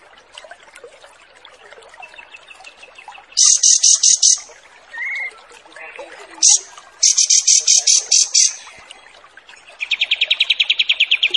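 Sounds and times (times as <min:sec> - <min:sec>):
kapas tembak song: 0:02.0 - 0:05.4, 0:06.3 - 0:08.8, 0:09.8 - 0:11.3.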